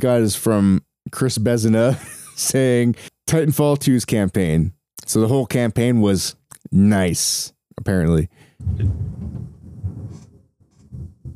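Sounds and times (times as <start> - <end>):
speech: 0.0 - 9.1
loud thunder clap: 8.6 - 11.3.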